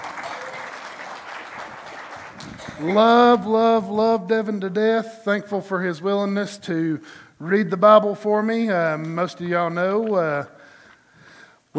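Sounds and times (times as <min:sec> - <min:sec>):
crowd applauding: 0:00.0 - 0:03.4
speech: 0:02.5 - 0:10.6.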